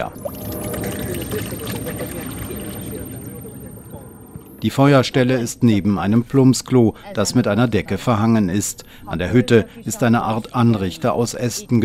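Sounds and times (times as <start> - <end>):
speech: 0.0 - 0.3, 1.3 - 2.5, 4.6 - 11.8
water poured from a canister into a kettle: 0.0 - 4.6.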